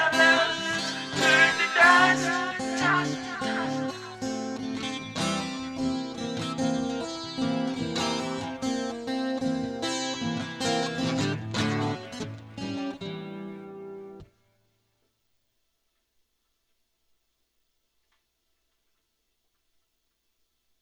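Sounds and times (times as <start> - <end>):
clean guitar loop: 0.0 - 14.2.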